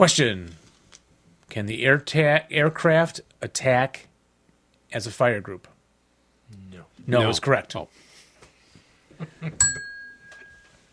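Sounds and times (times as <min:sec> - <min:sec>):
speech: 0:00.0 - 0:00.6, 0:01.5 - 0:04.1, 0:04.9 - 0:05.7, 0:06.5 - 0:08.0, 0:09.2 - 0:09.9
bell ding: 0:09.6 - 0:10.9.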